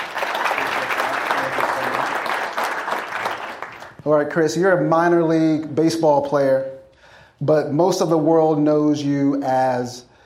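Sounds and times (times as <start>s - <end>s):
audience applause welcoming a guest speaker at the University of Texas: 0.0s - 4.0s
speech: 4.1s - 6.7s, 7.4s - 10.1s.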